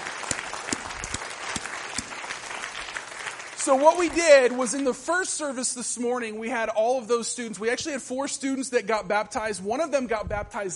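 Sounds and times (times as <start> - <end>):
audience applause: 0.0 - 5.0
speech: 3.6 - 10.7.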